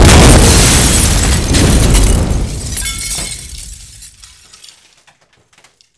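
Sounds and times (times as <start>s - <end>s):
boom: 0.0s - 3.8s.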